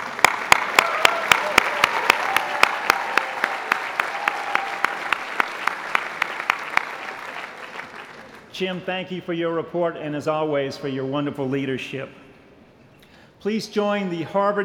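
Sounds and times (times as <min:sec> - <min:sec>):
crowd applauding: 0:00.0 - 0:08.5
speech: 0:08.6 - 0:12.2, 0:13.4 - 0:14.6.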